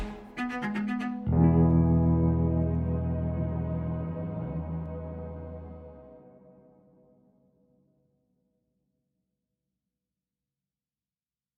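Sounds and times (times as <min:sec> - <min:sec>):
instrumental theme music: 0:00.0 - 0:06.6.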